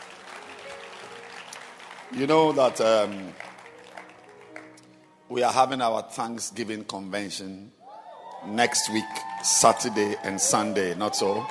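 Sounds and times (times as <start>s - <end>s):
audience clapping hands: 0.0s - 5.2s, 8.3s - 11.4s
speech: 2.1s - 3.5s, 5.3s - 7.8s, 8.4s - 11.4s.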